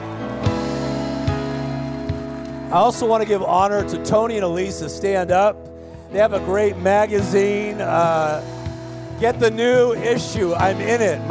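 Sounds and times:
audience clapping: 0.0 - 3.5
speech: 2.7 - 8.6, 9.2 - 11.3.

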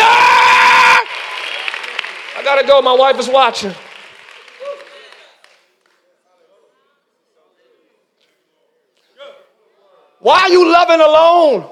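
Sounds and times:
audience clapping hands: 1.0 - 6.1
speech: 2.5 - 3.8, 10.2 - 11.7.

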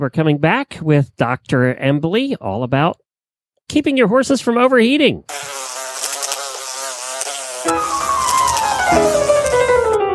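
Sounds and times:
speech: 0.0 - 3.0, 3.7 - 5.7, 8.9 - 9.3
flies buzzing: 5.3 - 10.0.

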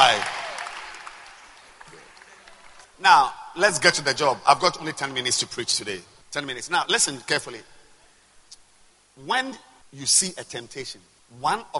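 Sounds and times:
audience clapping hands: 0.0 - 3.0
speech: 3.0 - 7.7, 9.2 - 11.7.

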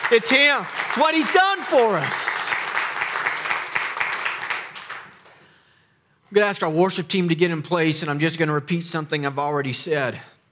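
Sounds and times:
audience clapping: 0.0 - 5.5
speech: 0.1 - 2.3, 6.3 - 10.3.

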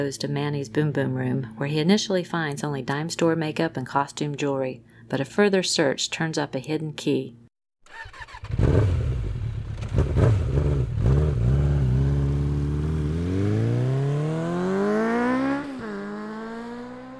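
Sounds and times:
speech: 0.0 - 8.9
motorcycle engine starting and accelerating away through the gears: 7.9 - 17.1.

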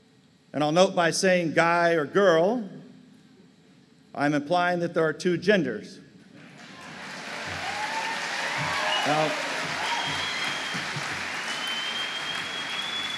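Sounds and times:
speech: 0.5 - 2.8, 4.2 - 6.0, 8.6 - 9.4
large audience applause: 6.4 - 13.1
whistles: 7.9 - 13.1.

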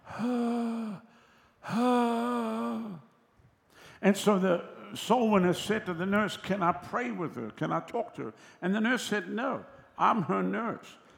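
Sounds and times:
man imitating a dying woman groaning: 1.7 - 3.0
speech: 4.0 - 11.0.

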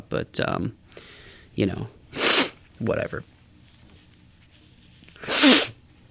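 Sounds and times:
speech: 0.1 - 2.2, 2.8 - 3.4
person blowing nose: 2.1 - 2.6, 5.2 - 5.8.

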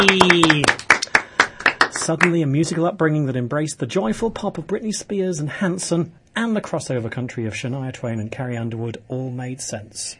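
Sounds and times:
speech: 0.0 - 0.8, 2.1 - 10.1
person cheering: 0.0 - 0.9
few hands giving a round of applause: 0.0 - 2.9.

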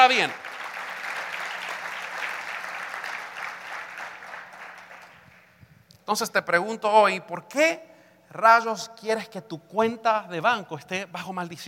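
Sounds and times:
speech: 0.0 - 0.5, 6.1 - 11.6
audience applause: 0.0 - 5.5.

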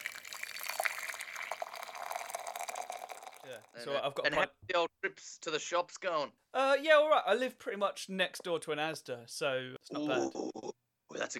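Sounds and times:
hot water poured onto reused tea bag in cup: 0.0 - 3.8
speech: 3.4 - 11.3.

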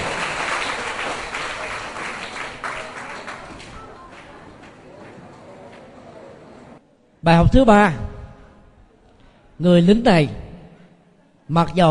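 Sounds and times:
children clapping: 0.0 - 4.8
speech: 7.2 - 8.0, 9.6 - 10.4, 11.5 - 11.8.

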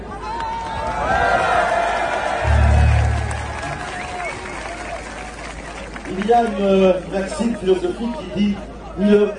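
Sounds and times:
crowd of protesters in France at a massive weekend demonstration: 0.8 - 4.9
low steady hum: 2.4 - 4.4
speech: 6.3 - 9.3.

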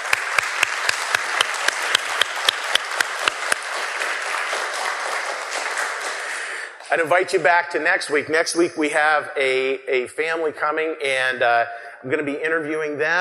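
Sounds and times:
crowd applause: 0.0 - 6.8
sharp rhythmic individual claps: 0.0 - 6.9
speech: 6.9 - 13.2.

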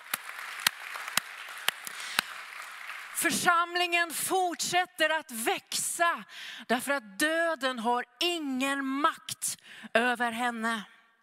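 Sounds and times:
audience applause: 0.0 - 3.3
speech: 3.2 - 10.9.

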